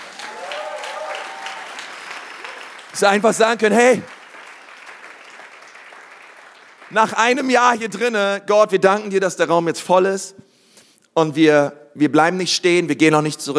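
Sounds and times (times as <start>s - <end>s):
audience applause: 0.0s - 7.5s
speech: 3.0s - 4.1s, 6.9s - 10.5s, 11.2s - 13.5s.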